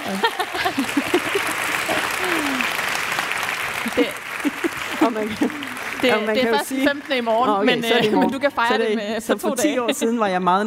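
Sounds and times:
laughter: 0:00.0 - 0:02.9, 0:03.8 - 0:10.2
people cheering: 0:00.0 - 0:08.4
audience applause: 0:00.0 - 0:08.6
speech: 0:04.0 - 0:04.2, 0:05.0 - 0:10.6.

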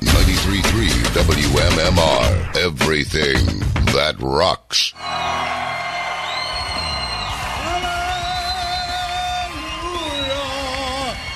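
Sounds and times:
speech: 0:00.8 - 0:05.6
pub crowd cheering and yelling: 0:04.9 - 0:11.3.

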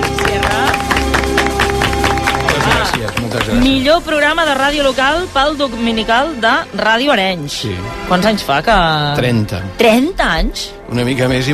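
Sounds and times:
crowd applause: 0:00.0 - 0:04.0
speech: 0:03.5 - 0:11.5.

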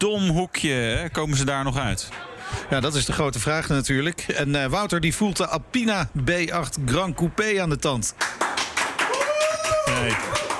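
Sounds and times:
speech: 0:00.0 - 0:08.4, 0:10.0 - 0:10.4
audience clapping: 0:08.1 - 0:10.5.

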